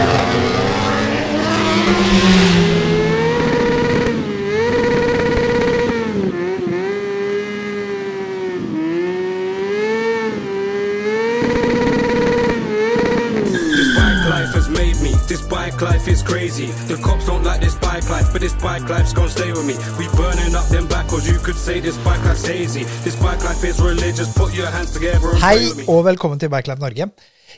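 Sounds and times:
tire squeals: 0.0s - 6.2s, 11.4s - 15.6s
race car engine screaming around a track: 0.0s - 25.8s
speech: 18.6s - 27.4s.

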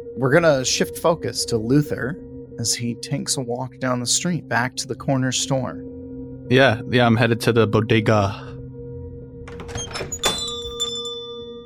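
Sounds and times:
speech: 0.2s - 8.6s
shop door opening: 9.5s - 11.1s
shop door bell ringing: 9.5s - 11.6s.

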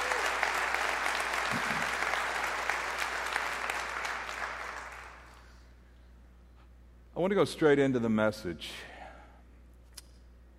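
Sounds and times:
audience clapping: 0.0s - 5.6s
speech: 7.2s - 8.9s.

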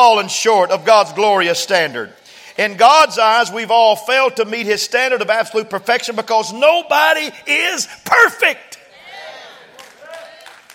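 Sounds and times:
speech: 0.1s - 8.7s
audience clapping and cheering: 9.5s - 10.7s.

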